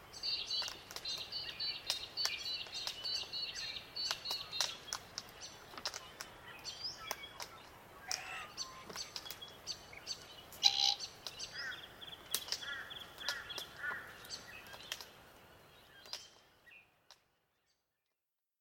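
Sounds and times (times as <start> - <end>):
other birds chirping and clicking in a busy chorus: 0.2 - 17.2
Glossy black cockatoo calls: 8.0 - 9.0.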